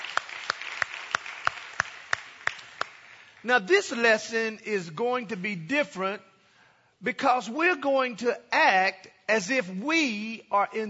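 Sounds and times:
audience clapping: 0:00.0 - 0:03.5
speech: 0:03.4 - 0:06.3, 0:07.0 - 0:10.8.

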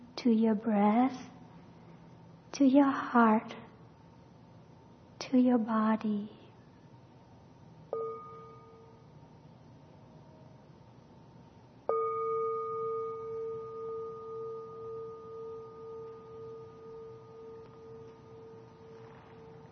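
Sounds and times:
speech: 0:00.2 - 0:01.4, 0:02.5 - 0:03.6, 0:05.3 - 0:06.4
meditation bell ringing: 0:07.9 - 0:09.4, 0:11.9 - 0:19.7.

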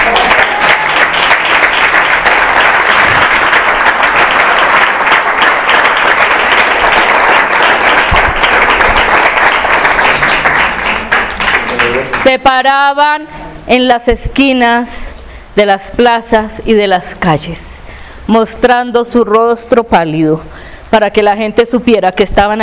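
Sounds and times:
audience applause: 0:00.0 - 0:12.3
speech: 0:12.3 - 0:15.0, 0:15.6 - 0:17.7, 0:18.3 - 0:22.6.

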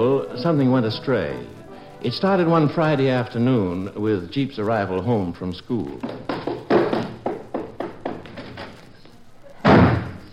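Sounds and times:
speech: 0:00.0 - 0:06.4
door slamming: 0:09.6 - 0:10.2.

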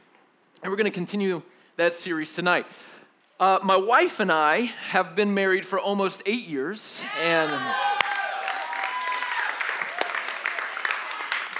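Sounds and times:
speech: 0:00.6 - 0:07.9
lone audience member at a sermon whooping: 0:07.0 - 0:10.2
audience member clapping: 0:07.8 - 0:11.5.

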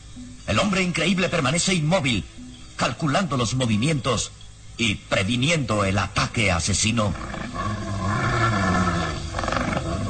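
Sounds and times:
speech: 0:00.2 - 0:07.4
menacing growl of a wild beast: 0:07.1 - 0:10.0.

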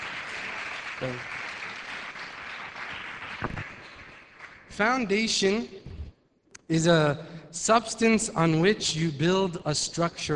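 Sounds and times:
group applauding: 0:00.0 - 0:04.8
speech: 0:01.0 - 0:01.4, 0:04.8 - 0:05.8, 0:06.7 - 0:10.3.

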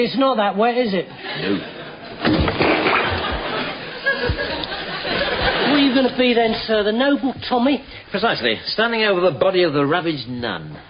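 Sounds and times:
speech: 0:00.0 - 0:02.8, 0:05.7 - 0:10.8
laughter: 0:01.2 - 0:02.2, 0:02.8 - 0:06.6
body splashing down into wet mud: 0:02.2 - 0:04.4
dull thud: 0:02.2 - 0:04.6.

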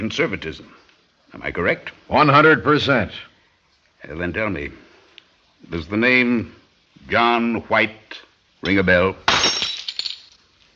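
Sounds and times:
speech: 0:00.0 - 0:03.3, 0:04.0 - 0:04.8, 0:05.6 - 0:09.3
drinking glass tipping over: 0:09.3 - 0:10.4.

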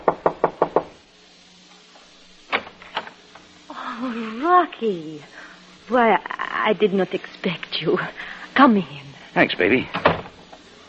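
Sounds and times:
knocking on an apartment door: 0:00.0 - 0:00.9
speech: 0:04.7 - 0:10.1.

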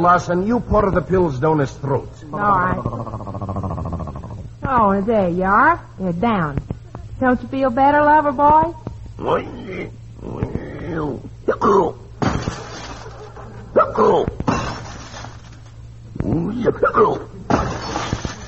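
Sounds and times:
speech: 0:00.0 - 0:03.4, 0:04.7 - 0:10.4, 0:11.0 - 0:12.6, 0:14.0 - 0:14.4, 0:16.3 - 0:17.3
window glass shattering: 0:12.2 - 0:13.3, 0:14.5 - 0:15.7, 0:17.5 - 0:18.4.

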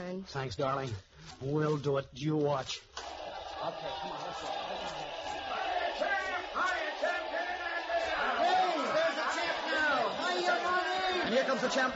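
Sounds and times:
speech: 0:00.1 - 0:02.9, 0:03.6 - 0:07.2, 0:10.4 - 0:11.9
crowd cheering wildly: 0:03.0 - 0:11.9.

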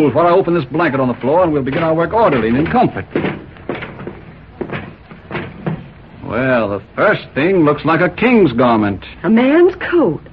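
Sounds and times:
speech: 0:00.0 - 0:03.3, 0:06.3 - 0:10.3
heavy chest lid weighted with iron being opened: 0:01.7 - 0:06.0.

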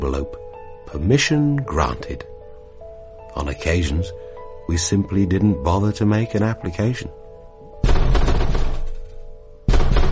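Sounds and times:
speech: 0:00.0 - 0:02.3, 0:03.4 - 0:07.2
pounding on a door: 0:07.8 - 0:09.0, 0:09.7 - 0:10.1.

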